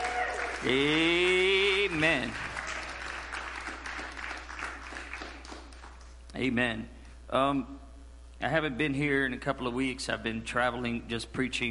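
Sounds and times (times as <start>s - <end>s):
audience hand clapping: 0.0s - 6.2s
speech: 0.6s - 1.3s, 1.9s - 2.5s, 6.4s - 7.8s, 8.4s - 11.7s.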